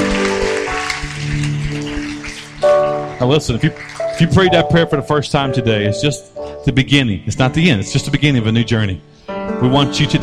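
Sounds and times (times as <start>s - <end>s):
church congregation applauding during a worship service: 0.0s - 5.4s
sustained musical tones with a steady beat: 0.0s - 6.5s
speech: 3.2s - 10.2s.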